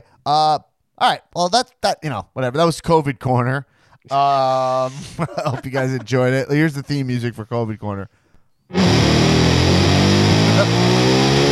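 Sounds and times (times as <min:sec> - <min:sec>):
speech: 0:00.2 - 0:09.3, 0:10.6 - 0:11.3
laughter: 0:04.1 - 0:07.6
car engine revving: 0:08.7 - 0:11.5.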